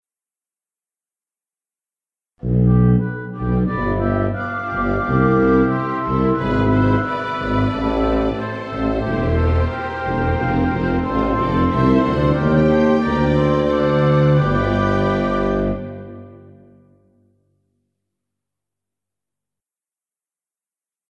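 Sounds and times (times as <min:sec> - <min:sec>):
instrumental music: 0:02.4 - 0:17.4.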